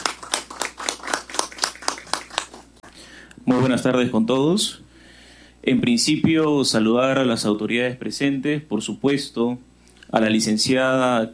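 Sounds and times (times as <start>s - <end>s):
audience clapping: 0.0s - 2.7s
speech: 3.5s - 4.9s, 5.6s - 11.3s.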